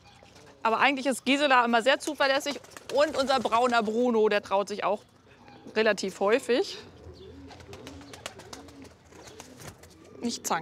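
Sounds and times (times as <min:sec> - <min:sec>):
speech: 0:00.6 - 0:06.9, 0:10.2 - 0:10.6
pigeons wings clapping: 0:02.3 - 0:04.0, 0:07.5 - 0:10.0.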